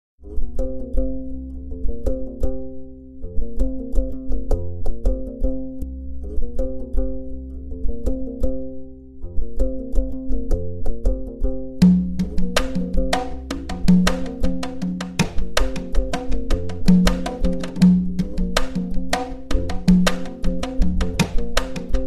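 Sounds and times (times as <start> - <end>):
gnawa music: 0.2 - 22.0.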